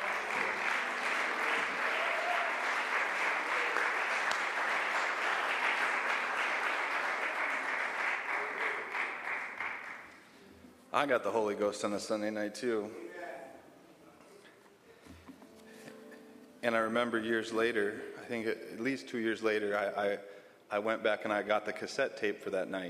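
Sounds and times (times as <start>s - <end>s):
church congregation applauding to welcome a preacher: 0.0s - 10.4s
speech: 11.0s - 13.1s, 16.7s - 22.8s.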